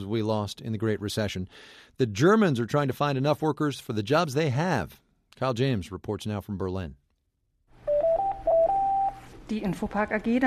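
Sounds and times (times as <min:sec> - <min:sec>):
speech: 0:00.0 - 0:07.0, 0:09.5 - 0:10.4
office telephone ringing at Infopark: 0:07.8 - 0:09.3.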